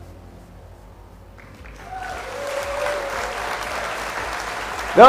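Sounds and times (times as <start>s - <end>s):
audience applause on a live show: 1.4s - 5.0s.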